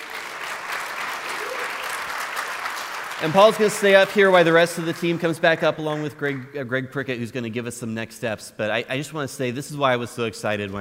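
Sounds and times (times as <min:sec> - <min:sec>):
crowd applause: 0:00.0 - 0:06.6
speech: 0:03.2 - 0:10.8.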